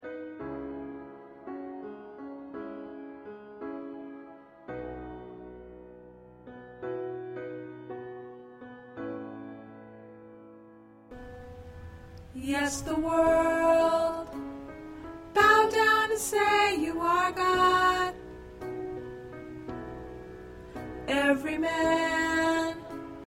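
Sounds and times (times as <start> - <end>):
choir with soprano: 12.4 - 14.4, 15.3 - 18.2, 21.0 - 23.2.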